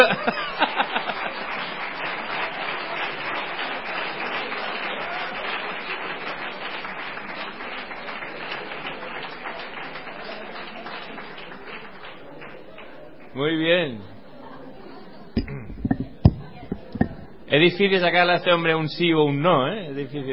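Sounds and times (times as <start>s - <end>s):
laughter: 0.0s - 1.8s, 14.3s - 15.9s
audience applause: 0.0s - 13.3s
speech: 17.6s - 20.3s.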